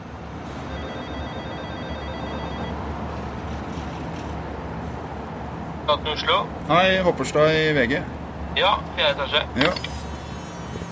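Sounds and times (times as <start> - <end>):
telephone ringing tone: 0.6 - 2.9
speech: 5.9 - 9.9.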